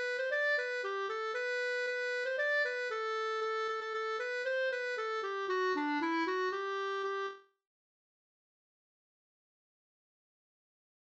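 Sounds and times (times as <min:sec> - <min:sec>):
polka music: 0:00.0 - 0:07.4.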